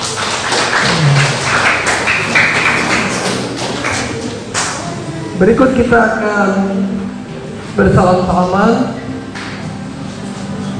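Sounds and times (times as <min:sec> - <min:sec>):
audience applauding: 0:00.0 - 0:05.4
speech: 0:05.4 - 0:07.1, 0:07.8 - 0:09.0.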